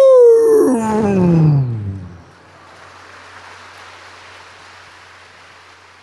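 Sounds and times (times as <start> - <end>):
tiger roar: 0.0 - 2.3.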